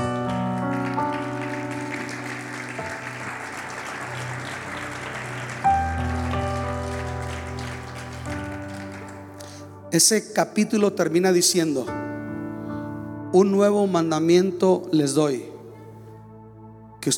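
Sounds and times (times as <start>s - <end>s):
audience applause: 0.0s - 9.7s
speech: 10.0s - 12.0s, 13.3s - 15.5s.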